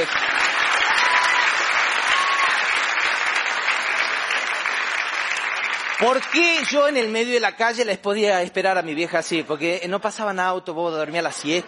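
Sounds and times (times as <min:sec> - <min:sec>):
audience applause: 0:00.0 - 0:07.2
speech: 0:06.0 - 0:11.6.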